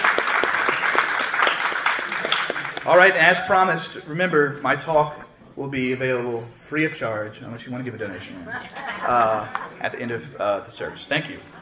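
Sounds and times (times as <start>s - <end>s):
audience applause: 0.0s - 3.2s
speech: 2.9s - 11.5s
laughter: 8.4s - 11.6s.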